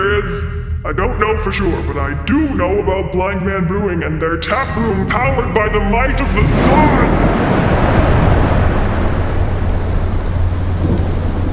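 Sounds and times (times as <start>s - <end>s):
thunder rumble: 0.0s - 11.5s
speech: 0.2s - 7.8s
heavy rain: 4.8s - 11.5s.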